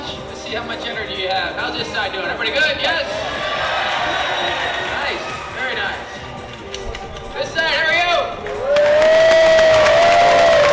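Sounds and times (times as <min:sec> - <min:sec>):
speech: 0:00.5 - 0:03.4
studio audience at a quiz show taping cheering and applauding: 0:03.2 - 0:05.6, 0:08.4 - 0:10.7.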